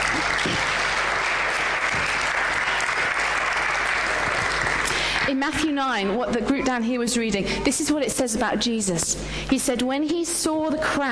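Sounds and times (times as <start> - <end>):
audience applause: 0.0 - 5.4
speech: 5.3 - 11.0.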